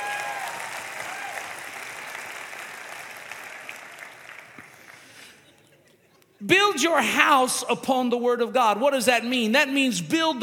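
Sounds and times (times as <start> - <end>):
audience applause: 0.0 - 5.2
speech: 6.4 - 10.4.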